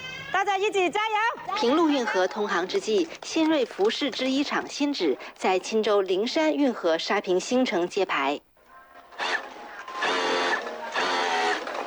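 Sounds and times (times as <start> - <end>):
speech: 0.4 - 8.5
sewing machines and overlock machines running: 9.1 - 11.8.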